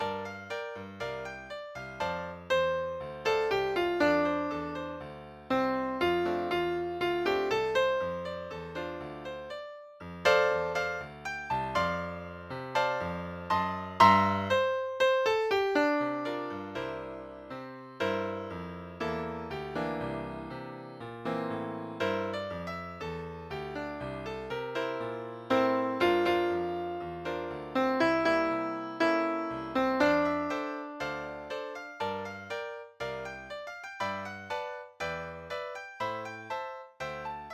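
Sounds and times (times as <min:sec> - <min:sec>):
piano: 0:00.0 - 0:37.5.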